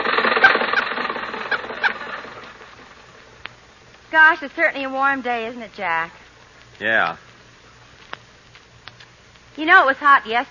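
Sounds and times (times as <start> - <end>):
car engine sound effect from a radio comedy: 0.0 - 3.2
speech: 4.1 - 6.2, 6.8 - 7.3, 9.6 - 10.4.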